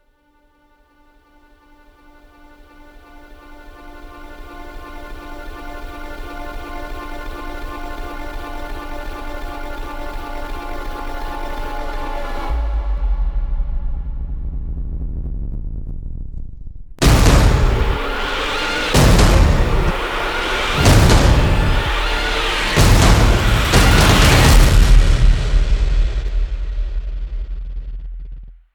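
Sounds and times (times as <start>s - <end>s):
scary sound design: 11.2s - 28.5s.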